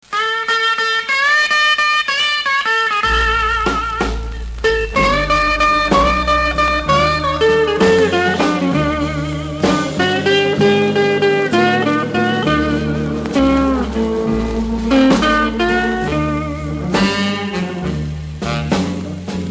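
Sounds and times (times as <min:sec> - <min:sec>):
blues guitar: 0:00.0 - 0:19.5.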